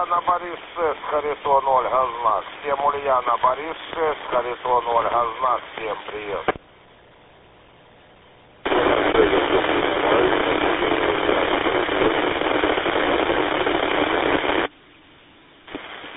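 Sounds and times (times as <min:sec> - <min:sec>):
faint radio transmission static crackle: 0:00.0 - 0:06.6, 0:08.6 - 0:14.7, 0:15.7 - 0:16.1
speech: 0:00.0 - 0:06.6.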